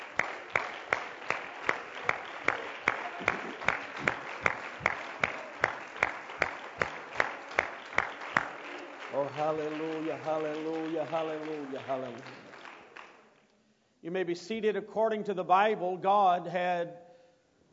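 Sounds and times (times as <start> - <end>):
audience clapping hands: 0.0 - 13.4
speech: 9.4 - 12.4, 14.0 - 17.0.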